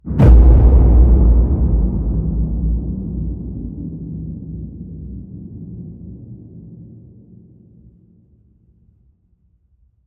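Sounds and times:
low cinematic hits: 0.0 - 7.2.

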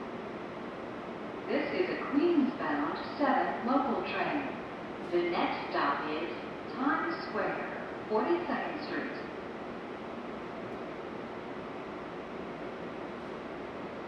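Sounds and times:
empty subway train idling in station: 0.0 - 14.0.

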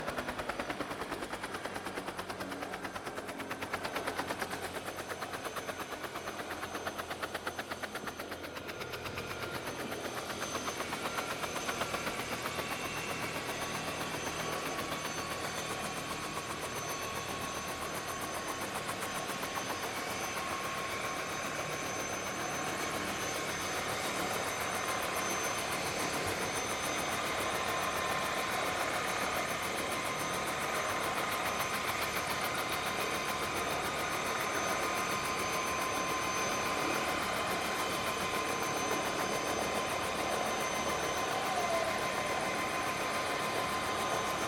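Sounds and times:
Bell Ranger helicopter approaching, landing and idling outdoors: 0.0 - 44.4.

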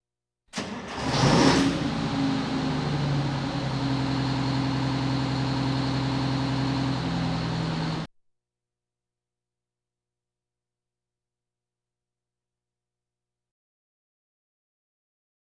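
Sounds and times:
fire engine sirens: 0.6 - 8.1
police sirens: 1.8 - 8.1.

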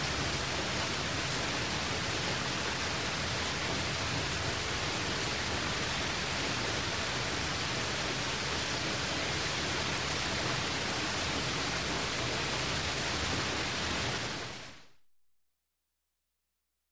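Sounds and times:
heavy rain: 0.0 - 14.9.

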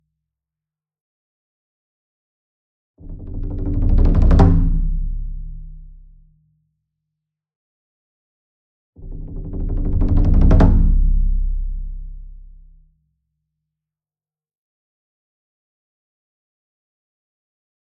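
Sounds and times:
28 inch taiko drum roll with soft beater: 3.2 - 5.2, 9.1 - 11.2.

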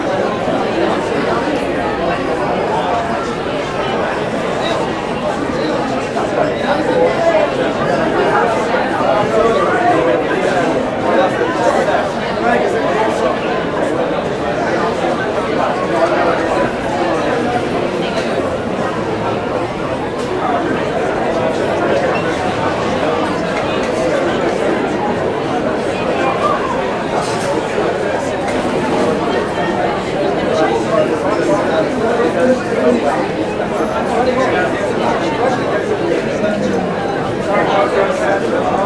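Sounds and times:
indoor crowd walla in a busy pub: 0.0 - 38.8.

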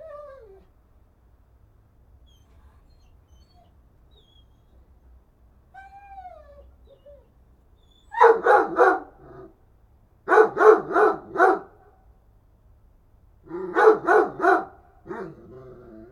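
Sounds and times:
dog barking: 8.2 - 9.3, 10.3 - 11.8, 13.5 - 15.4.

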